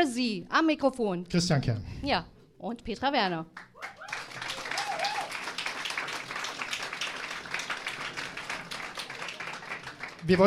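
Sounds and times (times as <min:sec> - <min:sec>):
speech: 0:00.0 - 0:04.0, 0:10.2 - 0:10.4
audience clapping: 0:03.6 - 0:10.4.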